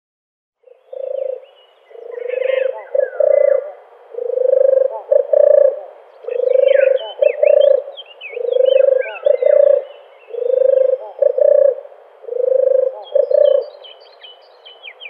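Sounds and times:
male European turtle dove display purring: 0:00.6 - 0:13.8.

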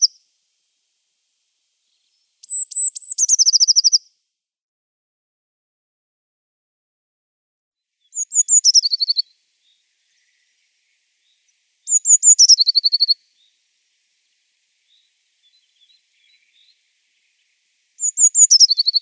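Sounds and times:
Eurasian blue tit singing: 0:00.0 - 0:00.2, 0:02.0 - 0:04.0, 0:08.0 - 0:13.6, 0:14.8 - 0:18.9.

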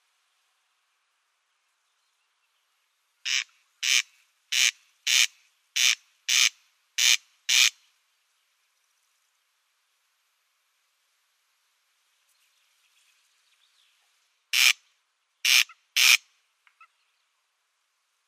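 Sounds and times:
Corn crake display call, harsh grating crex-crex rasps: 0:03.3 - 0:07.7, 0:14.6 - 0:14.8, 0:15.4 - 0:16.2.

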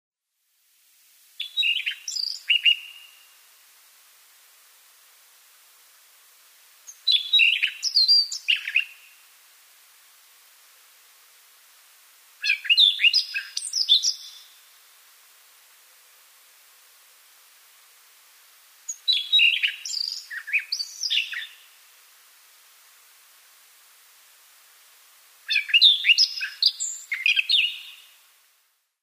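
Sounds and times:
Siberian rubythroat song: 0:01.4 - 0:03.3, 0:06.9 - 0:09.2, 0:12.4 - 0:14.6, 0:18.9 - 0:21.7, 0:25.5 - 0:28.1.

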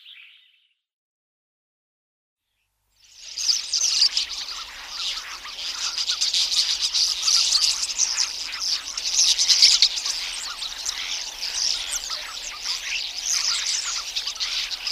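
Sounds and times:
common starling song with whistles, clicking rattles and buzzy chatter: 0:03.4 - 0:14.8.

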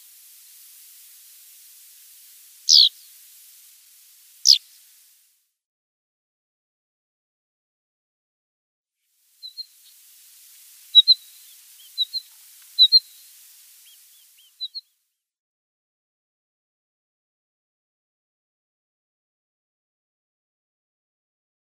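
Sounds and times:
Pied Wheatear calls: 0:02.2 - 0:03.4, 0:04.4 - 0:04.9, 0:09.4 - 0:14.9.

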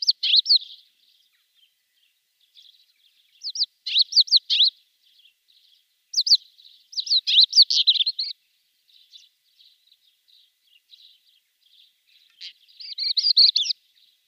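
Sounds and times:
pied wheatear song: 0:00.0 - 0:01.2, 0:02.6 - 0:08.4, 0:10.4 - 0:13.8.

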